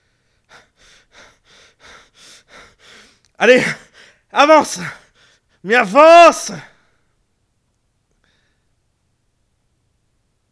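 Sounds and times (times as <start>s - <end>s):
person acting out long panicked breathless panting: 0.0s - 5.4s
speech: 3.4s - 5.0s, 5.6s - 6.7s.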